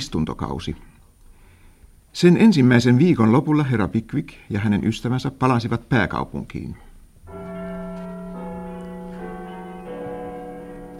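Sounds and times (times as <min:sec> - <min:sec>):
speech: 0:00.0 - 0:01.0, 0:02.1 - 0:06.9
clock bell striking nine: 0:07.3 - 0:10.9.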